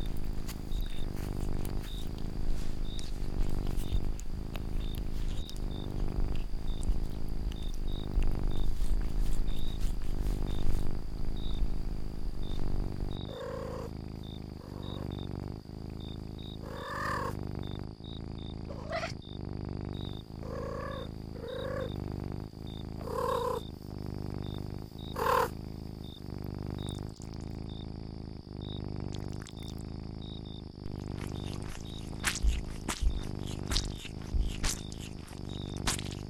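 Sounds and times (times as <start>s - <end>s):
domestic cat purring: 0.0s - 36.2s
domestic cat meowing: 18.7s - 19.2s.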